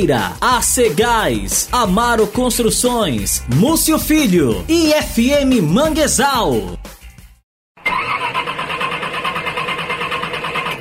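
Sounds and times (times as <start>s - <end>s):
speech: 0.0s - 6.8s
car engine starting: 7.8s - 10.8s.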